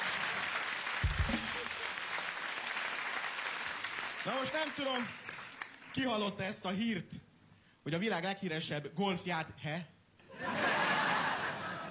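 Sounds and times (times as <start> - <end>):
audience applause: 0.0 - 6.0
speech: 4.2 - 5.2, 6.0 - 7.2, 7.8 - 10.5
laughter: 10.3 - 11.8.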